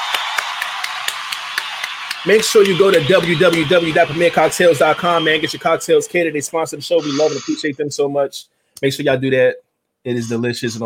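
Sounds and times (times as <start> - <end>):
applause: 0.0 - 5.6
speech: 2.2 - 10.8.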